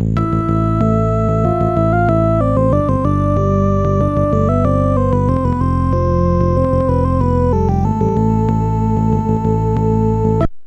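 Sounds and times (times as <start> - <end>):
Asian adventure music: 0.2 - 10.4.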